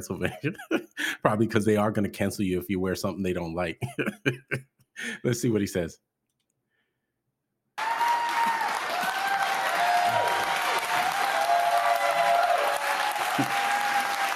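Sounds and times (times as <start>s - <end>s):
laughter: 0.0s - 1.2s, 3.8s - 4.6s
speech: 0.0s - 6.1s
audience applause: 7.8s - 14.3s
crowd whooping: 7.8s - 14.3s.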